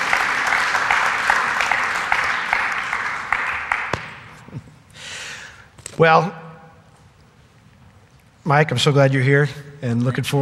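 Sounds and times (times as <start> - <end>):
audience applause welcoming a guest pastor: 0.0 - 4.3
speech: 6.0 - 6.4, 8.5 - 10.4.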